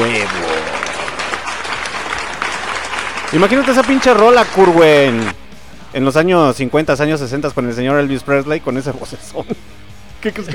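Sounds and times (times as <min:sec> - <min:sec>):
applause: 0:00.0 - 0:05.4
speech: 0:03.3 - 0:05.4, 0:06.0 - 0:10.5.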